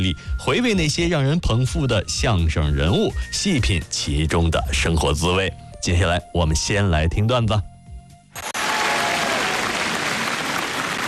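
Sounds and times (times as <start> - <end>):
speech: 0.0 - 7.7
warm audience applause: 8.4 - 11.0.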